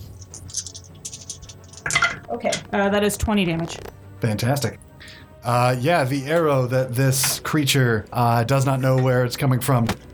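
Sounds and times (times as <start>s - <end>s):
dice rattling: 0.1s - 2.2s
speech: 1.8s - 4.8s, 5.4s - 10.1s.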